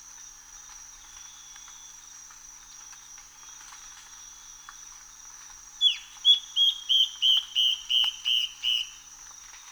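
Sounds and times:
Yellow-browed antbird calling whistled notes: 5.8s - 9.0s.

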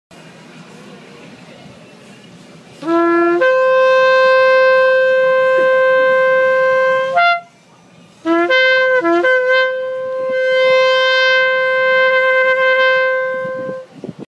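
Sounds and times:
shofar: 2.8s - 7.5s, 8.3s - 13.9s.

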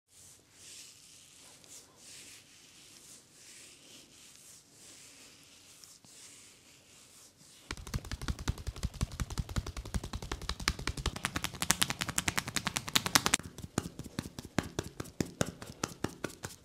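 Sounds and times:
massage: 0.1s - 16.6s.

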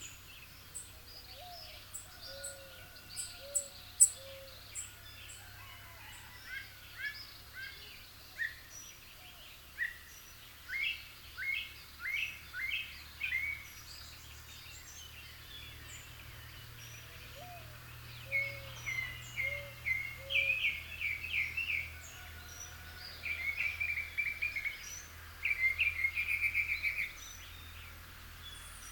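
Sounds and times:
Northern mockingbird song: 0.0s - 5.0s, 7.0s - 28.8s.

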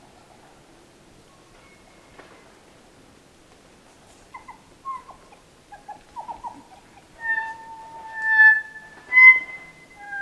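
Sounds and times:
kokako singing: 7.2s - 10.2s.

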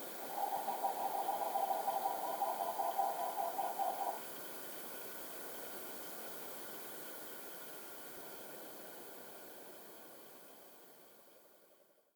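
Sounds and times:
green ibis calling: 0.2s - 4.3s.

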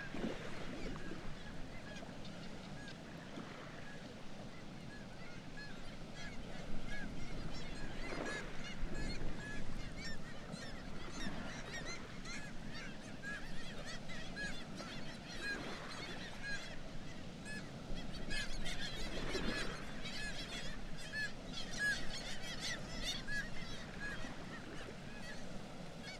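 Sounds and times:
kittiwake colony calling: 0.0s - 26.1s.

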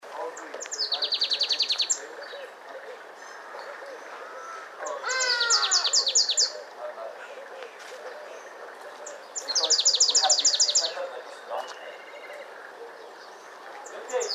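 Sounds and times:
variable sunbird calling: 0.4s - 7.4s, 8.3s - 14.3s.

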